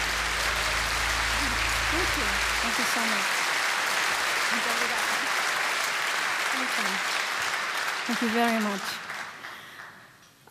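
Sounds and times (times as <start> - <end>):
audience applauding at a fado concert: 0.0 - 10.2
speech: 2.0 - 3.4, 4.5 - 5.4, 6.6 - 7.2, 8.1 - 9.0.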